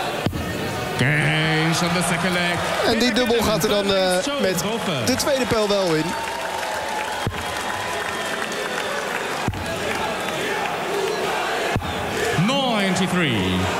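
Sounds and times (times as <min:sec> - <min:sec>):
Hungarian darts fans cheering and roaring: 0:00.0 - 0:13.7
speech: 0:01.0 - 0:06.4, 0:13.0 - 0:13.7
crowd singing a chant: 0:09.2 - 0:13.7.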